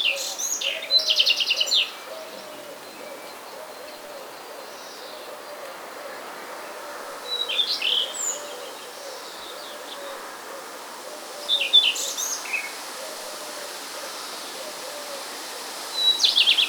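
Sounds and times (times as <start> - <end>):
rain: 0.0 - 16.6.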